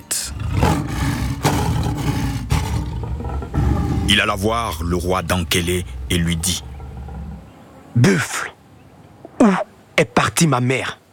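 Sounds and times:
lion roaring: 0.1s - 8.0s
speech: 4.1s - 6.7s, 8.0s - 8.6s, 9.4s - 11.0s.

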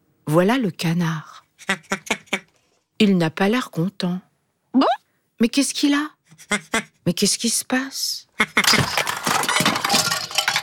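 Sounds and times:
speech: 0.4s - 2.2s, 3.0s - 9.1s
toys and objects knocked over falling: 8.6s - 10.6s.

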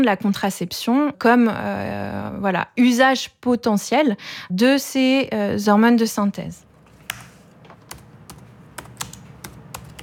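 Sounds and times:
speech: 0.0s - 6.7s
typing on a computer keyboard: 7.9s - 10.0s.

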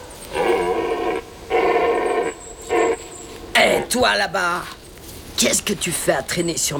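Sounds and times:
stag bellowing: 0.2s - 4.0s
speech: 3.8s - 4.8s, 5.4s - 6.7s.

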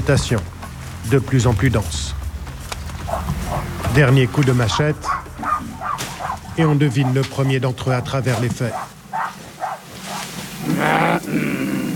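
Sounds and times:
speech: 0.0s - 2.2s, 4.0s - 5.2s, 6.6s - 8.9s
trackers imitating a wild animal's call: 3.0s - 3.9s, 4.7s - 11.9s.

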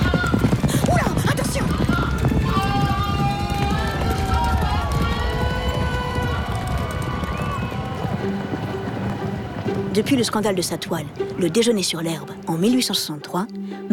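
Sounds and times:
excited crowd voices and shouts: 0.0s - 9.8s
racehorses galloping: 0.0s - 12.2s
speech: 10.0s - 13.9s.

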